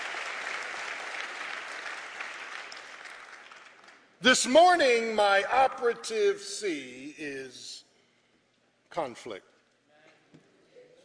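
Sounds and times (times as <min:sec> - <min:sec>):
audience clapping: 0:00.0 - 0:04.3
speech: 0:04.2 - 0:07.8, 0:09.0 - 0:09.5.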